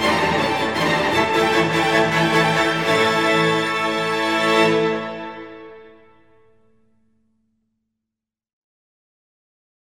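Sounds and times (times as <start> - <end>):
orchestra playing folk dances: 0.0 - 5.8.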